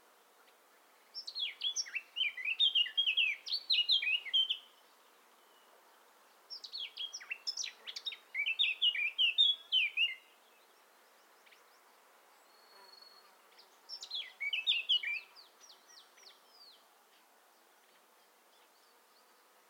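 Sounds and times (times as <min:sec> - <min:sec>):
Eurasian blackcap singing: 0:01.2 - 0:04.7, 0:06.6 - 0:10.2, 0:13.9 - 0:16.7.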